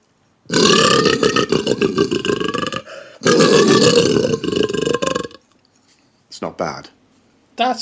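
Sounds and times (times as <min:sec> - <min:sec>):
lion roar impression using a pint glass: 0:00.5 - 0:05.4.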